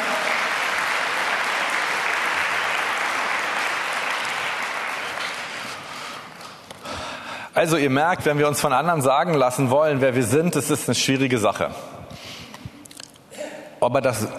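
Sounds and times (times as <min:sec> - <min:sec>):
audience applause: 0:00.0 - 0:06.5
speech: 0:07.6 - 0:11.9, 0:13.8 - 0:14.3.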